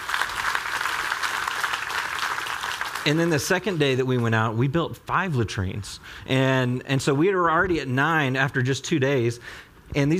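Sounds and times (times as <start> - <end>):
audience clapping: 0.0 - 3.8
speech: 3.0 - 10.1.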